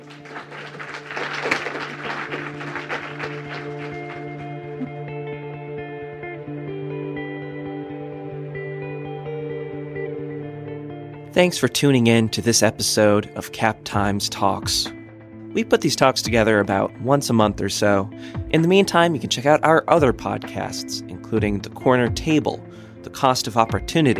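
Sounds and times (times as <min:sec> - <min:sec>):
audience applause for panel: 0:00.0 - 0:05.0
speech: 0:11.4 - 0:15.0, 0:15.6 - 0:24.1.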